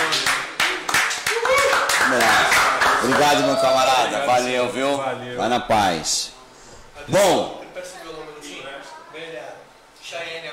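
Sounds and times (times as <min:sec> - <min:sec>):
audience clapping: 0:00.0 - 0:03.8
speech: 0:03.1 - 0:06.4, 0:07.1 - 0:08.0.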